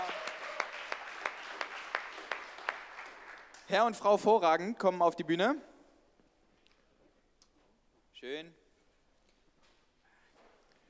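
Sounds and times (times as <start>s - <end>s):
audience applause: 0.0s - 3.7s
speech: 3.7s - 5.7s, 8.2s - 8.6s.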